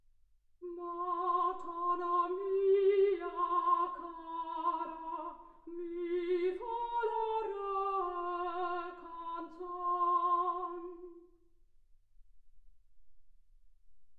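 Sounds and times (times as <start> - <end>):
soprano singing: 0.6 - 11.4.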